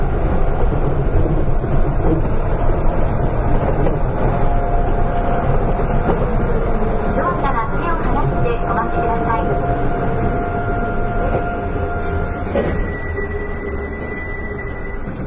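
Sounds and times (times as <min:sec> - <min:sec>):
Astram Line 6000 train running in Hiroshima City: 0:00.0 - 0:15.2
thin whining tones of the Astram Line 6000 train: 0:04.5 - 0:15.2.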